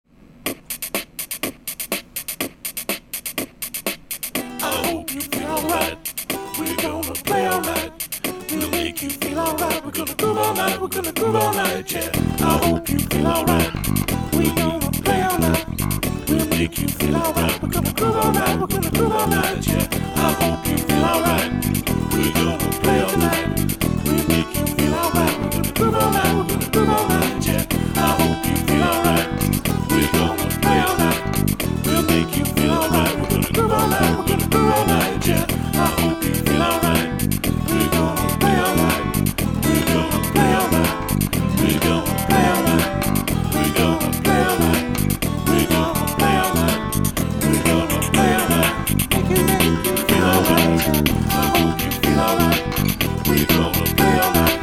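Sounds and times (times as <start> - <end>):
music groove: 0.4 - 54.6.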